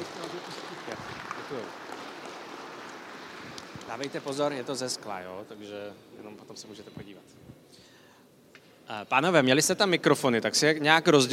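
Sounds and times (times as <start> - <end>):
crowd clapping: 0.0 - 5.8
speech: 3.9 - 7.4, 8.9 - 11.3.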